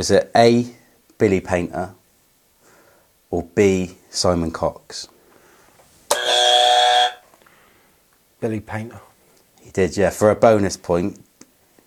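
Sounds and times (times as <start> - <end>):
speech: 0.0 - 2.0, 3.3 - 5.1, 8.4 - 9.1, 9.7 - 11.3
quiz buzzer: 6.1 - 7.2.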